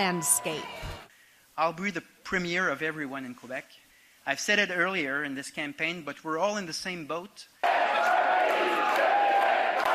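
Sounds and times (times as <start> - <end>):
speech: 0.0 - 1.0, 1.6 - 7.8
crowd chanting at Parti Québécois headquarters: 7.6 - 9.9.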